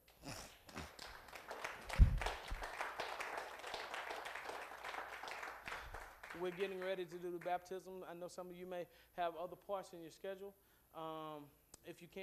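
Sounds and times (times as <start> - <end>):
audience clapping: 0.0 - 7.6
speech: 6.4 - 12.2.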